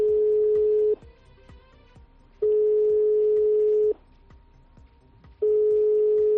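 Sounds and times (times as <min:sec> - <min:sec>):
telephone busy signal: 0:00.0 - 0:01.0, 0:02.4 - 0:04.0, 0:05.4 - 0:06.3.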